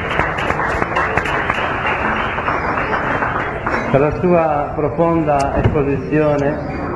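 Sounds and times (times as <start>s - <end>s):
audience clapping for Srila Bhaktivaibhava Puri Goswami Maharaj after his talk: 0.0s - 4.6s
speech: 3.9s - 6.8s.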